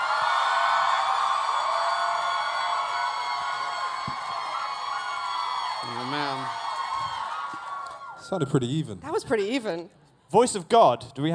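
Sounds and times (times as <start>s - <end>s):
audience cheering: 0.0s - 8.7s
speech: 8.3s - 11.3s.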